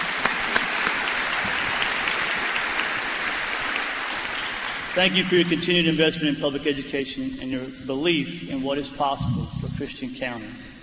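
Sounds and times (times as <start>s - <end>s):
crowd applause: 0.0s - 5.7s
speech: 5.0s - 10.7s.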